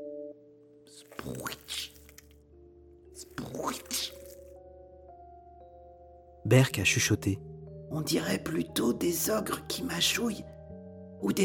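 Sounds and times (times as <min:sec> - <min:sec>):
speech: 0:00.9 - 0:01.9, 0:06.5 - 0:10.5, 0:11.2 - 0:11.4
big paws squishing and crushing: 0:01.0 - 0:02.3, 0:03.2 - 0:04.5.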